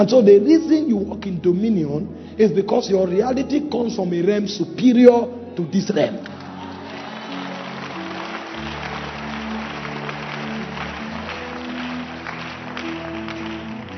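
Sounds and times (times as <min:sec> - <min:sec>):
speech: 0:00.0 - 0:06.4
crowd clapping: 0:06.2 - 0:13.9.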